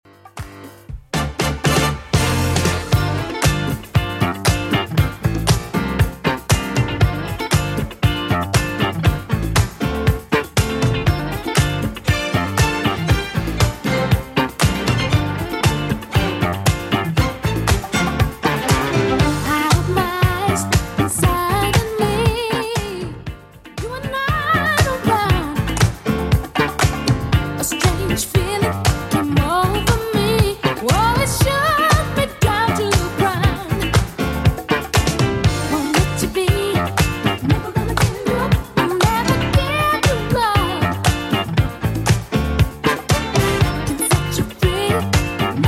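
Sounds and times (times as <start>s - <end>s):
1980s-style dance remix at 118 bpm: 0.3s - 45.6s.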